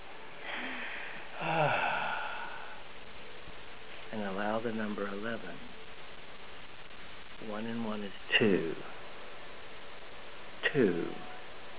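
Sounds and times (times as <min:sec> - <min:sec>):
deep breath in: 0:00.4 - 0:02.8
speech: 0:04.2 - 0:05.8, 0:07.4 - 0:09.0, 0:10.7 - 0:11.2.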